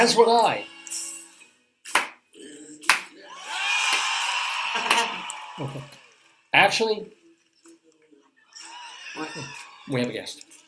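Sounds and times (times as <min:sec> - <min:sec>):
speech: 0:00.0 - 0:00.7, 0:05.6 - 0:07.2, 0:09.2 - 0:10.5
sharp claps or smacks: 0:01.9 - 0:02.2, 0:02.8 - 0:03.1, 0:03.8 - 0:06.3
crowd cheering and whooping: 0:03.2 - 0:06.5, 0:08.5 - 0:10.1.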